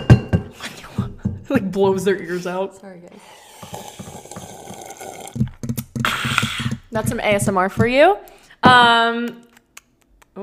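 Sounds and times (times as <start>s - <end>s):
speech: 1.5s - 3.4s, 6.9s - 9.4s
person slurping coffee: 3.1s - 6.9s.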